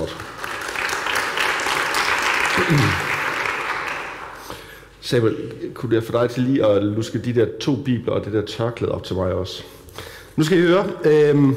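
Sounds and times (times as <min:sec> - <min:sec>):
audience applause for the worship singers: 0:00.0 - 0:04.5
low voice murmur: 0:02.6 - 0:03.1
speech: 0:02.6 - 0:03.1, 0:05.1 - 0:11.5.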